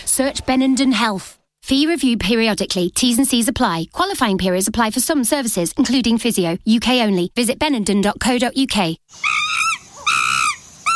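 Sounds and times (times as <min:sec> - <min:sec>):
speech: 0:00.2 - 0:09.3
monkey calling in a jungle with high wailing tones: 0:09.1 - 0:10.9.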